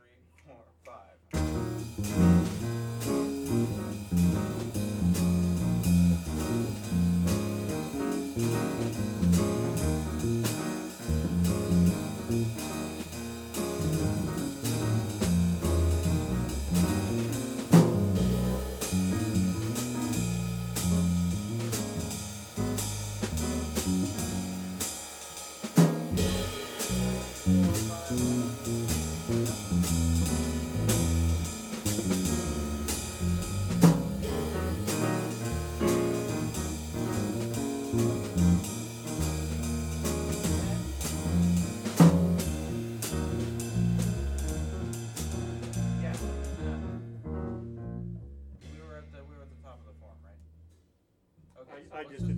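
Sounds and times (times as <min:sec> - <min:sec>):
jazz music: 0:01.3 - 0:50.8, 0:52.1 - 0:52.3.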